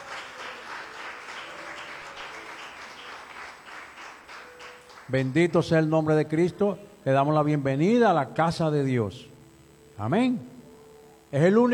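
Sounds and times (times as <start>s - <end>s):
audience applause: 0.0s - 5.4s
speech: 5.1s - 9.3s, 10.0s - 10.5s, 11.3s - 11.7s.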